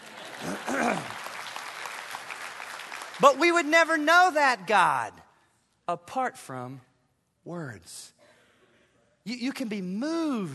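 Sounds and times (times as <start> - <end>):
audience clapping: 0.0 - 5.1
speech: 3.2 - 5.2, 5.9 - 8.2, 9.2 - 10.5.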